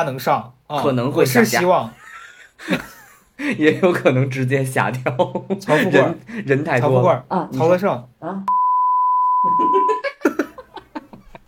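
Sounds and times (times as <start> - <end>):
speech: 0.0 - 2.0, 2.6 - 8.6, 9.4 - 10.1
laughter: 1.9 - 4.0, 4.9 - 6.2, 9.4 - 11.4
censorship bleep over swearing: 8.5 - 10.1.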